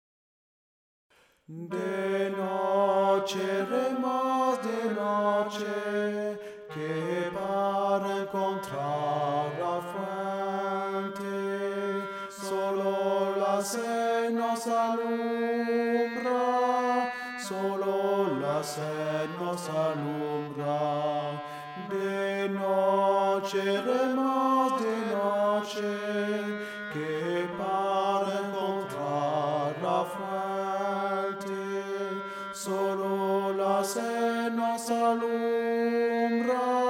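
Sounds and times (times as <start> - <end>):
tenor singing: 1.5 - 36.8.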